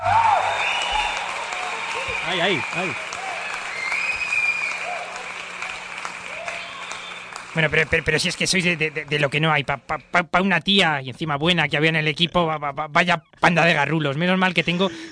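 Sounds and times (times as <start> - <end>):
applause: 0.0 - 9.4
speech: 2.3 - 3.1, 7.6 - 15.0.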